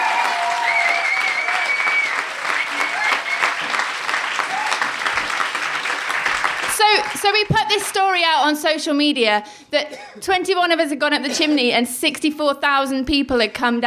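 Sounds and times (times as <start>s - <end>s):
crowd cheering and applause: 0.0s - 7.5s
speech: 7.2s - 13.8s.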